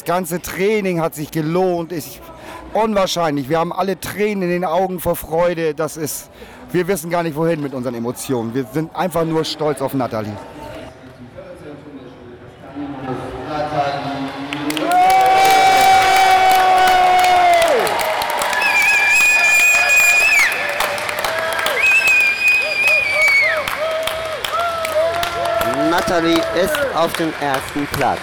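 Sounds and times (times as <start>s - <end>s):
speech: 0.1s - 10.7s, 26.2s - 28.2s
crowd cheering: 14.0s - 28.2s.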